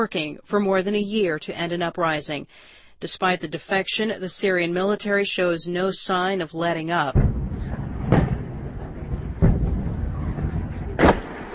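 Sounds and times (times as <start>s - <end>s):
speech: 0.0s - 7.4s
explosions in the southern city of Daraa: 7.1s - 11.5s.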